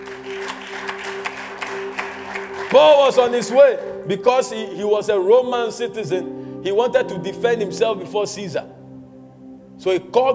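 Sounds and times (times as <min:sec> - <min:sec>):
hand claps: 0:00.0 - 0:03.6
speech: 0:02.7 - 0:08.8, 0:09.8 - 0:10.3.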